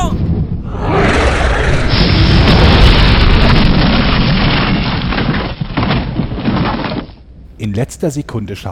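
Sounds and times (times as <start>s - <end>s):
cannon blast of fire destroying a gate: 0.1s - 6.5s
speech: 7.8s - 8.6s.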